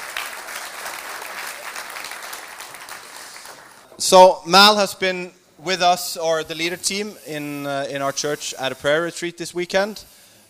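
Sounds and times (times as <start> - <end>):
church congregation clapping to welcome a guest: 0.0 - 3.9
speech: 4.0 - 10.2.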